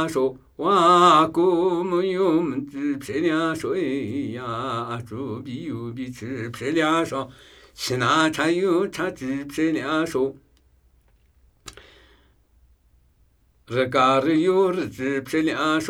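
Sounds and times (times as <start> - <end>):
Namuyi Tibetan ritual chanting: 0.0 - 10.5, 13.7 - 15.8.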